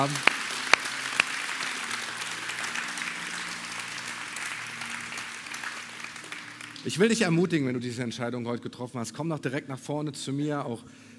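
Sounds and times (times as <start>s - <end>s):
speech: 0.0s - 0.3s, 6.8s - 11.1s
sharp individual claps: 0.0s - 6.8s
crowd applause: 0.0s - 7.5s.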